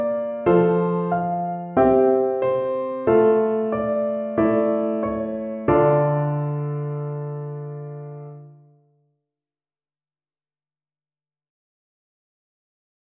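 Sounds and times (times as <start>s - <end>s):
piano accompaniment: 0.0s - 8.8s.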